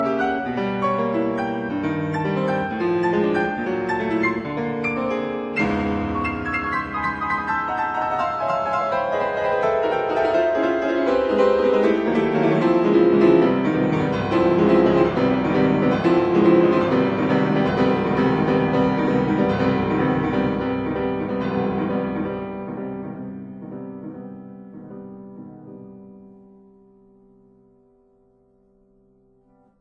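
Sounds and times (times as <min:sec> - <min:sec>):
piano piece: 0:00.0 - 0:29.7.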